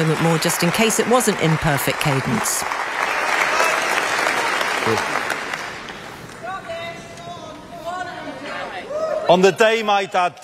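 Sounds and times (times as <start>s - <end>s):
speech: 0.0s - 2.9s, 4.8s - 5.2s, 9.3s - 10.4s
conference audience standing and clapping: 0.0s - 6.6s.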